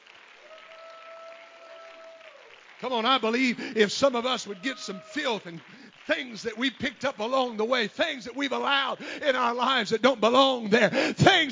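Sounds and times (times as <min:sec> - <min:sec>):
audience clapping hands: 0:00.0 - 0:10.5
speech: 0:02.8 - 0:11.4.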